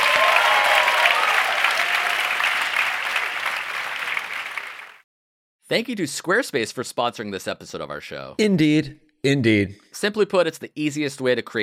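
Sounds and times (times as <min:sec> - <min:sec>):
live audience round of applause: 0:00.0 - 0:05.0
speech: 0:05.7 - 0:11.6.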